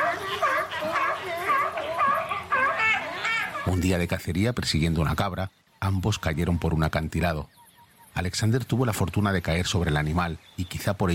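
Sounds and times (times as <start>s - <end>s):
sea lions barking: 0.0s - 3.8s
speech: 3.7s - 7.6s, 8.2s - 11.1s.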